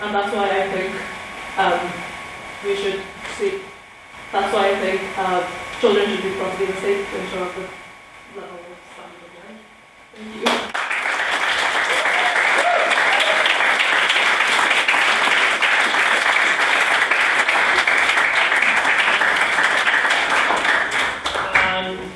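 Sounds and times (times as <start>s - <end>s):
speech: 0.0s - 3.7s, 4.3s - 8.7s
audience applause after a speech: 10.5s - 21.8s.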